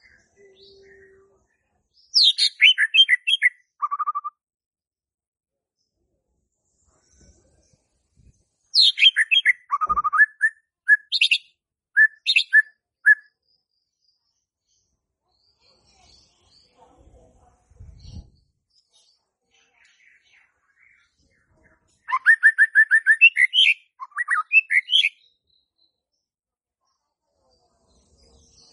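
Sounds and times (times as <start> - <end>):
white-rumped shama song: 2.2 - 4.4, 8.8 - 13.3, 22.1 - 25.2.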